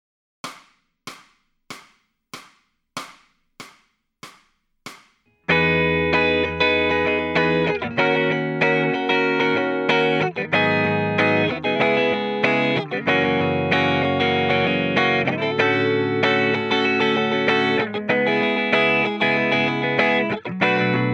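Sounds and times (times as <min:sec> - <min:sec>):
electric guitar lead backing track: 0:05.5 - 0:21.1.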